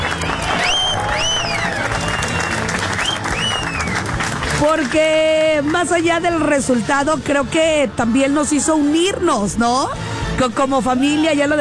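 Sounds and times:
rising and falling whistles: 0.0 - 4.1
crowd applauding: 0.0 - 6.0
speech: 4.6 - 11.5.

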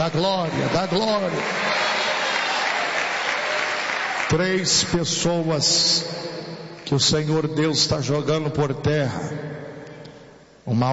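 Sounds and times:
speech: 0.0 - 1.9, 4.3 - 6.3, 6.9 - 9.5, 10.7 - 10.9
church congregation clapping for Jesus during a Portuguese-language service: 0.0 - 5.3.

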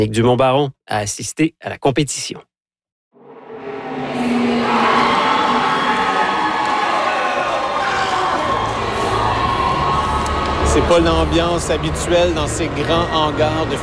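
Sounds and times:
speech: 0.0 - 2.5, 10.8 - 13.8
teenagers cheering at robotics competition: 3.3 - 13.8.

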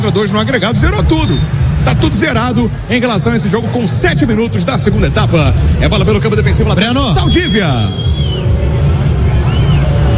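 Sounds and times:
speech: 0.1 - 8.2
shrill whistle-like sweeps: 1.1 - 1.6, 7.0 - 8.6, 9.3 - 10.1
football stadium crowd booing: 7.2 - 10.1.

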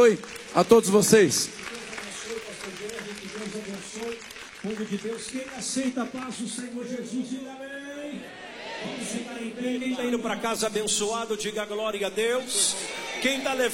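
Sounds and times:
speech: 0.0 - 1.8, 3.4 - 13.7
audience applause: 0.0 - 6.6.

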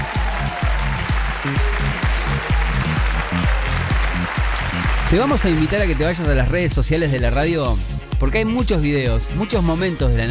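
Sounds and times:
applause: 0.0 - 6.5
speech: 1.4 - 2.0, 5.1 - 10.2.

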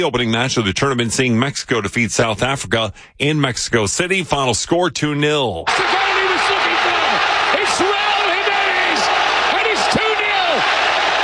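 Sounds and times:
speech: 0.0 - 6.6, 7.6 - 8.0
stadium crowd cheering after goal: 5.7 - 11.2.

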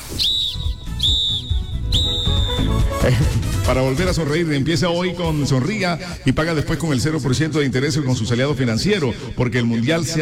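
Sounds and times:
referee's final whistle: 0.0 - 2.9
speech: 3.0 - 10.1.

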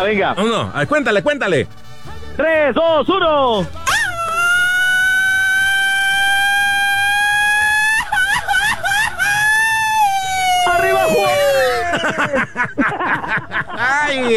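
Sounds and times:
speech: 0.0 - 1.8, 2.4 - 3.8, 12.0 - 14.3
long sustained shout: 3.8 - 12.2
laughter: 7.7 - 9.9, 11.5 - 14.3.

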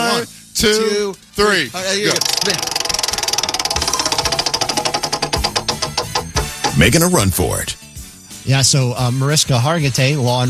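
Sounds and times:
speech: 0.2 - 2.7, 6.8 - 10.4
prize wheel spun during a game ticking: 2.1 - 7.5.

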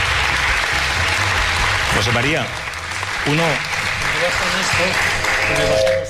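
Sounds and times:
audience applause: 0.0 - 6.0
speech: 2.0 - 2.6, 3.2 - 6.0.

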